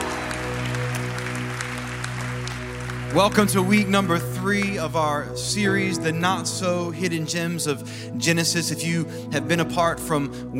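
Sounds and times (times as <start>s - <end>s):
church congregation applauding and making noise: 0.0s - 5.1s
speech: 3.1s - 10.5s.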